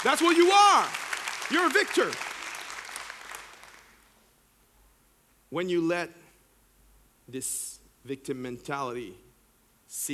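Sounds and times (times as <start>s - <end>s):
speech: 0.0s - 2.3s, 5.5s - 6.2s, 7.3s - 9.2s, 9.9s - 10.1s
audience clapping: 0.0s - 4.1s.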